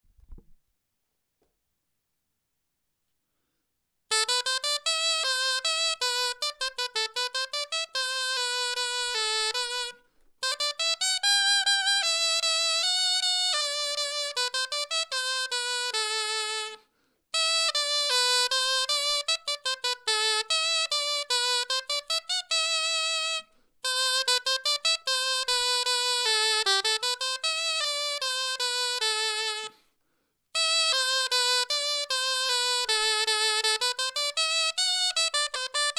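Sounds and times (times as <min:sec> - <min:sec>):
clarinet etude: 0:04.1 - 0:29.9, 0:30.6 - 0:35.9.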